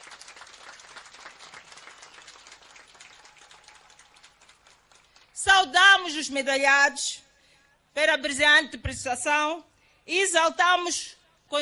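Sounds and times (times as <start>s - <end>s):
applause for athletes: 0.0s - 5.7s
speech: 5.5s - 7.2s, 8.0s - 11.6s.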